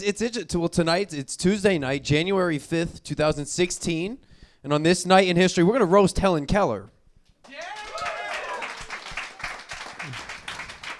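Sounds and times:
speech: 0.0s - 7.8s
voices calling out and cheering: 7.4s - 10.3s
audience clapping: 7.4s - 10.9s.

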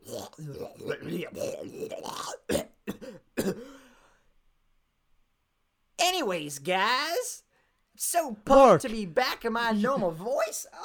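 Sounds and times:
man clearing throat: 0.0s - 3.8s
speech: 0.4s - 2.6s, 6.2s - 7.3s, 8.0s - 10.8s.

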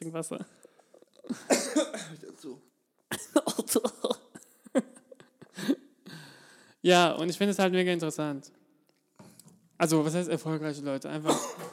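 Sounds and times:
speech: 0.0s - 0.7s, 1.3s - 4.2s, 6.8s - 8.6s, 9.8s - 11.7s
person coughing fit: 1.3s - 2.3s, 3.1s - 4.9s, 11.2s - 11.7s.

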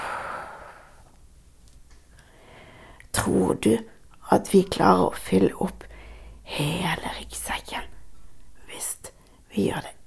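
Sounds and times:
slow exhale through the mouth: 0.0s - 1.0s
speech: 3.3s - 5.9s, 6.5s - 7.5s, 9.6s - 10.0s.

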